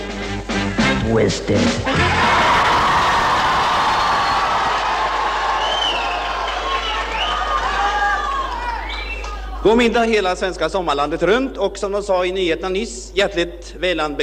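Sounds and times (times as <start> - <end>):
speech: 1.0 - 2.3, 9.6 - 14.2
spontaneous happy voices of a choir: 1.9 - 9.7.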